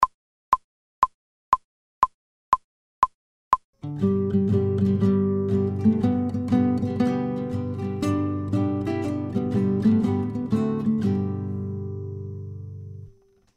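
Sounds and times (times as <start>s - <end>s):
fast guitar playing: 3.8s - 13.2s.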